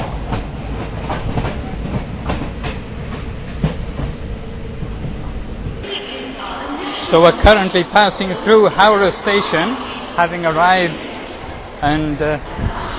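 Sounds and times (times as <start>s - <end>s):
train wheels clacking over rails: 0.0s - 5.8s
train running along rural route: 0.0s - 12.9s
speech: 7.1s - 11.0s, 11.8s - 12.9s.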